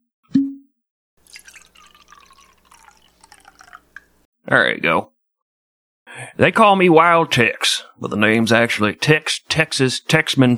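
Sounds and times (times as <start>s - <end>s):
whiskey pouring into a glass: 1.2s - 4.2s
speech: 4.5s - 5.1s, 6.4s - 10.5s.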